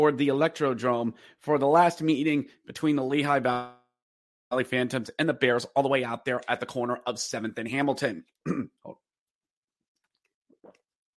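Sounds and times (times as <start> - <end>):
speech: 0.0 - 3.8, 4.5 - 9.0
person coughing: 8.4 - 9.0.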